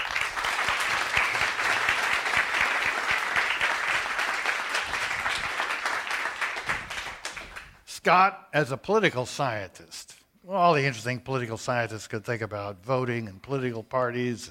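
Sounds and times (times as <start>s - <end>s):
live audience applause: 0.0s - 7.8s
speech: 8.0s - 14.4s.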